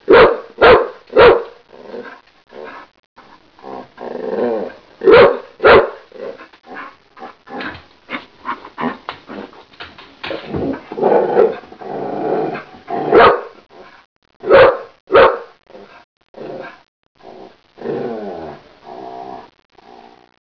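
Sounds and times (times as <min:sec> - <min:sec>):
animal barking: 0:00.1 - 0:02.8, 0:04.6 - 0:09.5, 0:12.4 - 0:13.6, 0:14.4 - 0:16.8.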